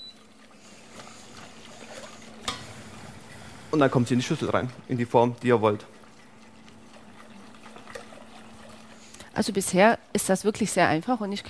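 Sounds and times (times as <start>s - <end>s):
low steady hum: 0.0s - 11.4s
stirring a mixture in a pot as it heats toward a boil: 0.2s - 11.4s
speech: 3.7s - 5.9s, 9.4s - 11.4s.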